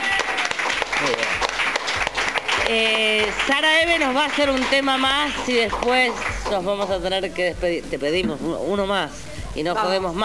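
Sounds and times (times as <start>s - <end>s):
applause following a live musical performance: 0.0s - 6.5s
speech: 2.7s - 10.2s.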